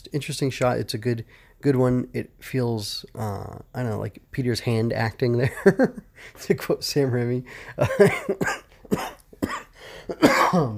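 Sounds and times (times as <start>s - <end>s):
speech: 0.1s - 9.1s, 10.1s - 10.7s
person coughing with a lingering cough: 7.8s - 10.7s
throat clearing: 8.1s - 10.7s.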